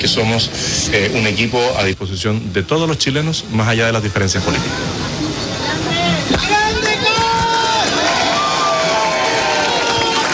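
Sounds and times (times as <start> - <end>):
speech: 0.1 - 5.2, 6.3 - 6.8
crowd applauding: 6.5 - 10.3.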